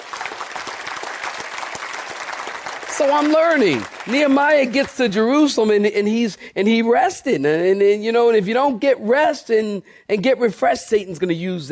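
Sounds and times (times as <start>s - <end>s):
crowd clapping: 0.0s - 5.4s
speech: 3.0s - 11.7s.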